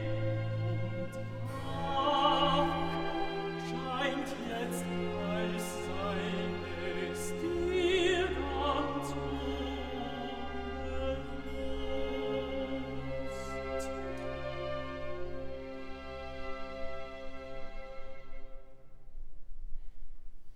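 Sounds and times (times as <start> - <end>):
tenor singing recitative: 0.0 - 14.4.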